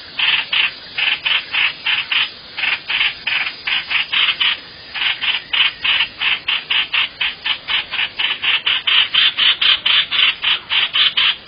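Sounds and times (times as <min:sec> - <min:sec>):
bird rasping calls: 0:00.1 - 0:11.4.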